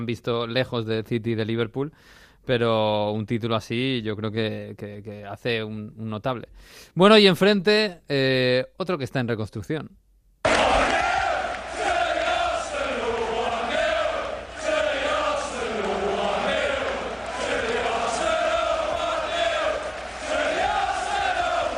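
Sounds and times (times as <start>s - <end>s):
speech: 0.0s - 10.0s
large crowd of football fans chanting in unison inside a stadium: 10.4s - 21.7s.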